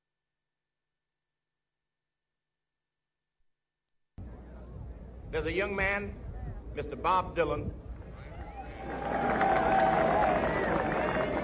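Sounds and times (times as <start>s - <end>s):
speech: 5.3s - 6.2s, 6.8s - 7.8s
crowd applauding: 8.1s - 11.4s
voices cheering: 8.1s - 11.4s.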